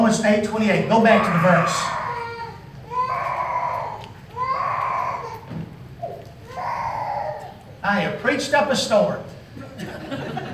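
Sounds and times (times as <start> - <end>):
speech: 0.1 - 2.0, 7.8 - 10.0
baby crying in church: 1.0 - 7.7
laughter: 9.6 - 10.5.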